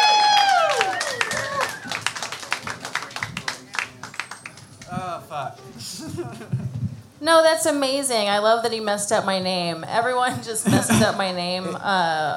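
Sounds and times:
small audience clapping to welcome a comedy duo: 0:00.0 - 0:05.1
speech: 0:05.5 - 0:12.3
laughter: 0:05.8 - 0:06.8, 0:10.3 - 0:11.9.

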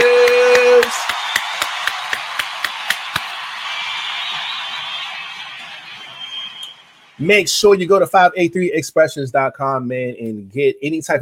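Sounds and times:
hands clapping: 0:00.0 - 0:06.8
speech: 0:07.2 - 0:11.2.

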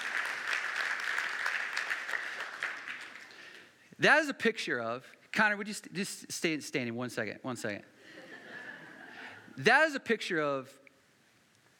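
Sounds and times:
audience applause: 0:00.0 - 0:03.6
speech: 0:04.0 - 0:08.2, 0:09.6 - 0:10.8
laughter: 0:08.0 - 0:09.5.

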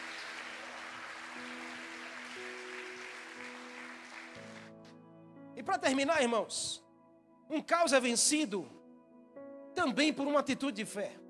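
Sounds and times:
audience applauding: 0:00.0 - 0:04.8
organ or keyboard chords: 0:00.0 - 0:04.9
speech: 0:05.6 - 0:06.8, 0:07.5 - 0:08.8, 0:09.8 - 0:11.2.

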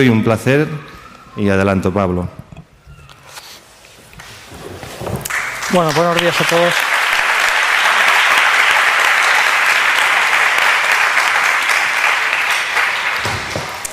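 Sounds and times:
speech: 0:00.0 - 0:00.8, 0:01.4 - 0:02.4, 0:05.7 - 0:06.9
audience applause: 0:05.2 - 0:13.9.

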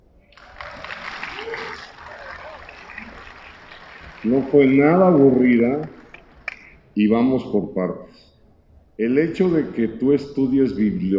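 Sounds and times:
crowd clapping: 0:00.3 - 0:06.8
voices murmuring: 0:01.4 - 0:06.8
speech: 0:04.2 - 0:06.0, 0:07.0 - 0:08.2, 0:09.0 - 0:11.1.

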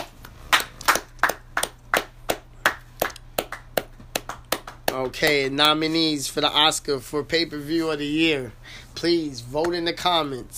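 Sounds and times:
people clapping: 0:00.0 - 0:05.5
speech: 0:04.9 - 0:10.5.

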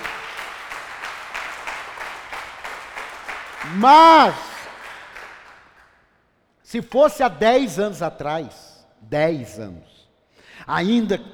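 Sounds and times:
audience applause: 0:00.0 - 0:05.8
speech: 0:03.6 - 0:04.5, 0:06.7 - 0:09.9, 0:10.6 - 0:11.3.

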